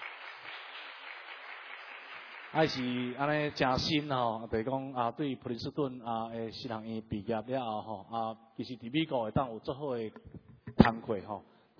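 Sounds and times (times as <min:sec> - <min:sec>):
applause at a Presbyterian church gathering: 0:00.0 - 0:03.8
speech: 0:02.5 - 0:11.7.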